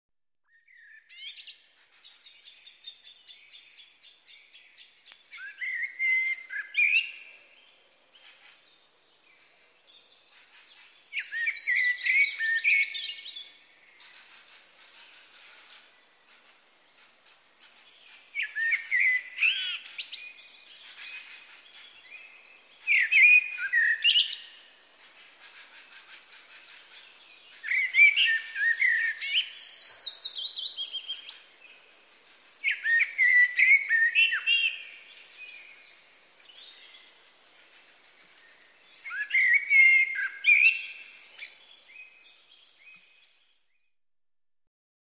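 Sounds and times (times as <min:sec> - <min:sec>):
willow warbler: 0:00.4 - 0:43.9
Eurasian blackbird Turdus merula alarm call: 0:04.5 - 0:07.3, 0:10.2 - 0:31.6, 0:32.6 - 0:37.9, 0:39.0 - 0:43.1.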